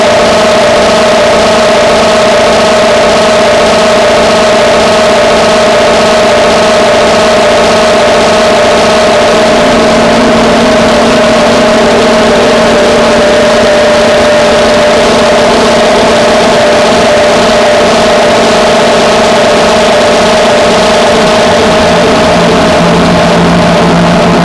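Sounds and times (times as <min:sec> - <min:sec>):
drone noise: 0:00.0 - 0:24.4.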